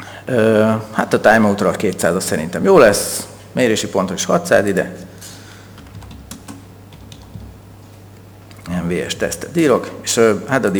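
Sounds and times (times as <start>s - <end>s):
speech: 0.3s - 5.1s, 8.9s - 10.7s
typing a web server address on a computer keyboard: 5.8s - 7.6s.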